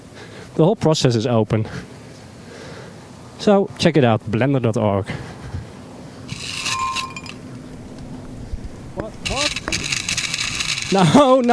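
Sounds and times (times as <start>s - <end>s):
speech: 0.6s - 1.9s, 3.4s - 5.3s, 10.9s - 11.4s
ice clinking in a whiskey glass: 6.6s - 7.4s.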